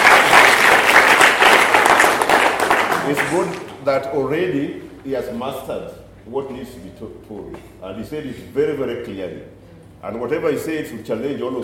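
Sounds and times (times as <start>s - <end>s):
audience clapping for speakers at a gathering: 0.0s - 3.8s
speech: 3.1s - 11.6s.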